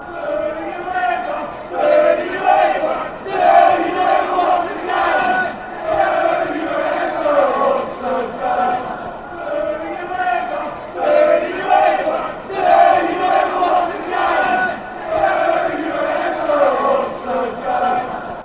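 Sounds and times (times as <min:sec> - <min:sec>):
game fans chanting: 0:00.0 - 0:18.4.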